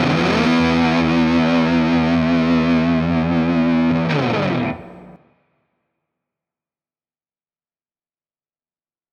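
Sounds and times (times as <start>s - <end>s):
punk music: 0.0s - 5.2s.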